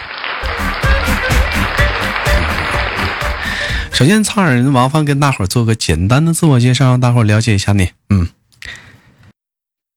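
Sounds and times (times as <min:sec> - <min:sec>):
applause: 0:00.0 - 0:04.0
speech: 0:04.0 - 0:08.8.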